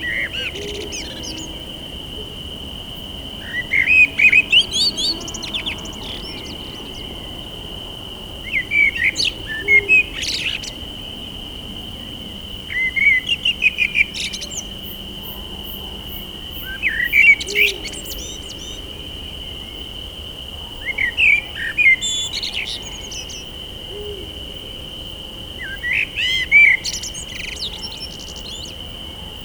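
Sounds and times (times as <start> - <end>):
blackbird singing at night: 0.0 - 1.6, 3.4 - 7.4, 8.4 - 10.8, 12.7 - 15.0, 16.6 - 18.9, 20.8 - 24.1, 25.6 - 28.8.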